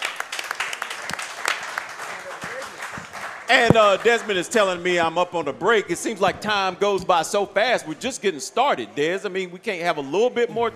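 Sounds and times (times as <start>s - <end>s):
audience applause for a guest: 0.0s - 4.5s
speech: 3.5s - 10.7s.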